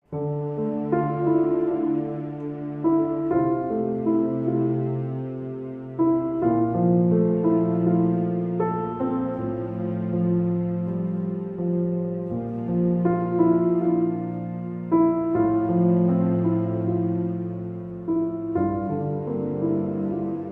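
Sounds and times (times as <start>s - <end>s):
strings: 0.0s - 20.5s.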